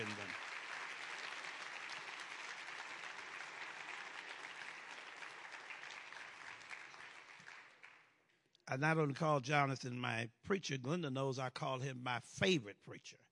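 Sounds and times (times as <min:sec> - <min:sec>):
audience applauding: 0:00.0 - 0:08.1
speech: 0:08.7 - 0:13.2.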